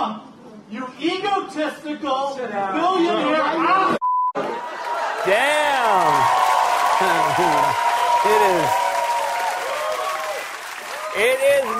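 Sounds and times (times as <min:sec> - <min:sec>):
speech: 0:00.0 - 0:06.4
crowd yelling and heckling at a campaign event: 0:03.8 - 0:11.7
clapping: 0:05.7 - 0:11.7.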